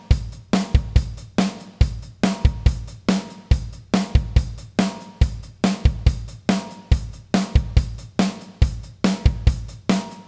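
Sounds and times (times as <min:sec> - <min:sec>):
drums playing chorus: 0:00.0 - 0:10.2.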